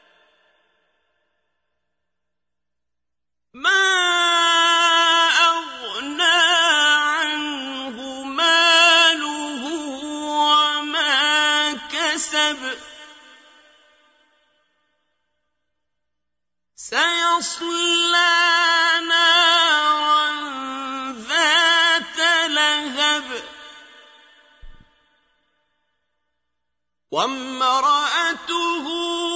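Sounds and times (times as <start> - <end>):
qari reciting the Quran: 3.6 - 14.5, 16.8 - 25.1, 27.1 - 29.3.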